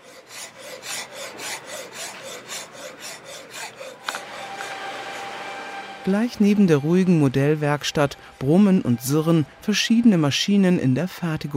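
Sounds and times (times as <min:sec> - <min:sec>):
rasp filing hard hornbeam wood: 0:00.0 - 0:05.9
speech: 0:06.0 - 0:11.5.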